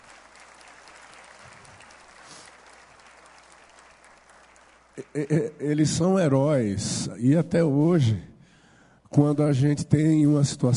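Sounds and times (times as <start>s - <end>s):
audience applause: 0.0s - 5.3s
speech: 5.0s - 8.3s, 9.2s - 10.7s.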